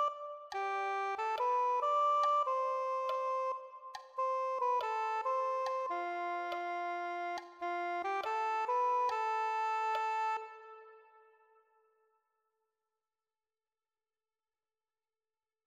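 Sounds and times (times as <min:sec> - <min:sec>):
soprano saxophone: 0:00.0 - 0:11.6.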